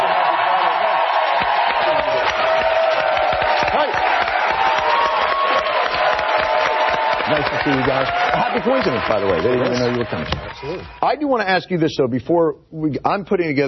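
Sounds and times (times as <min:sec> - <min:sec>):
shouts and whoops: 0:00.0 - 0:09.0
crowd clapping and cheering: 0:00.0 - 0:11.1
speech: 0:07.6 - 0:13.6.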